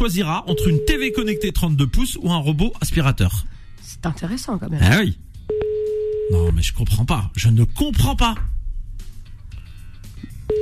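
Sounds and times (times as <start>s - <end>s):
speech: 0.0s - 5.2s, 6.3s - 8.5s
telephone ringing tone: 0.5s - 1.6s, 5.5s - 6.4s.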